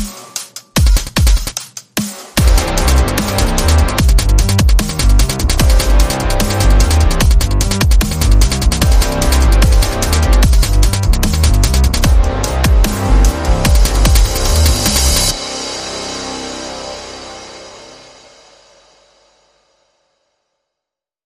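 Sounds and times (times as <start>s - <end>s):
percussion: 0.0s - 19.5s
bass: 2.4s - 18.2s.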